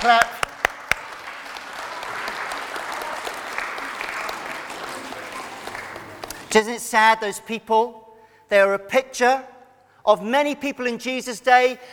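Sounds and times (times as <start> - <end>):
speech: 0.0 - 0.4, 6.5 - 11.9
audience applause: 0.0 - 6.5.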